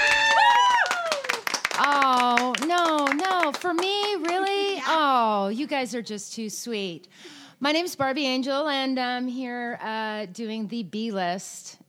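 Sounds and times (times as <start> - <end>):
voice cheering: 0.0 - 1.4
audience clapping: 0.0 - 4.8
speech: 3.5 - 11.8.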